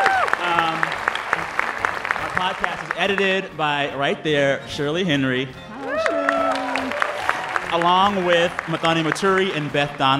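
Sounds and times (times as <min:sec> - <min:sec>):
audience clapping: 0:00.0 - 0:03.6, 0:05.7 - 0:10.1
speech: 0:02.4 - 0:05.6, 0:07.7 - 0:10.1
cheering and murmuring voices: 0:05.6 - 0:09.7.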